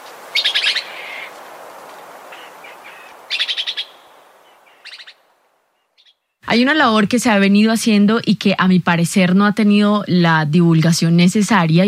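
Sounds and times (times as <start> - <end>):
red-eyed antbird song recorded in Huila: 0.3 - 1.3, 2.3 - 6.4
speech: 6.5 - 11.8.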